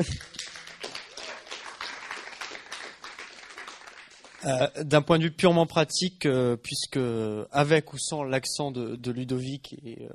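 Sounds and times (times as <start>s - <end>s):
speech: 0.0s - 0.3s, 4.4s - 10.1s
audience applause: 0.0s - 4.5s.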